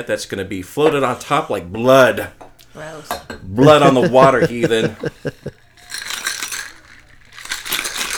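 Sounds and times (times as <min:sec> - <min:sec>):
speech: 0:00.0 - 0:06.0
laughter: 0:03.4 - 0:05.7
ice rattling in a cocktail shaker shaken hard: 0:03.9 - 0:08.1.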